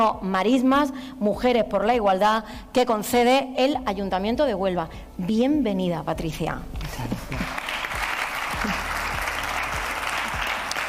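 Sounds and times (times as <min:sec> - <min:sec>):
speech: 0:00.0 - 0:07.4
applause from a sizable crowd: 0:07.4 - 0:10.8.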